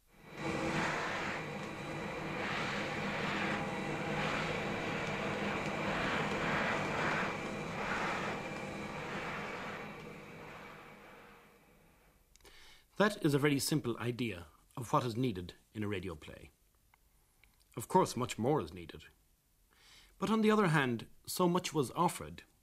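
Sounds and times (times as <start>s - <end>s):
vacuum cleaner switched on and running: 0.0s - 12.1s
speech: 13.0s - 16.6s, 17.8s - 19.2s, 20.2s - 22.5s.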